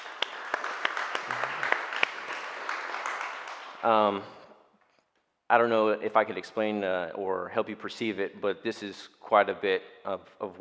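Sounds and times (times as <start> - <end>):
audience applause: 0.0 - 4.0
speech: 3.8 - 4.4, 5.5 - 10.6.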